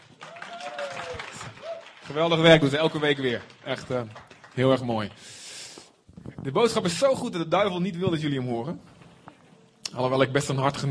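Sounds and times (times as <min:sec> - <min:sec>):
audience applause: 0:00.0 - 0:05.3
speech: 0:02.1 - 0:05.4, 0:06.4 - 0:08.9, 0:09.9 - 0:10.8.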